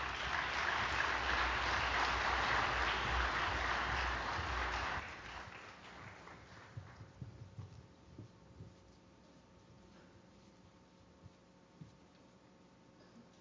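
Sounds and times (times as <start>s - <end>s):
audience applause: 0.0s - 7.0s.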